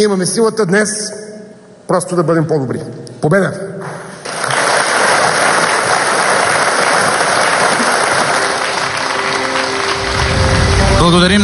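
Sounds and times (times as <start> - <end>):
speech: 0.0 - 1.3, 1.9 - 4.0, 11.0 - 11.4
crowd applauding: 4.2 - 11.4.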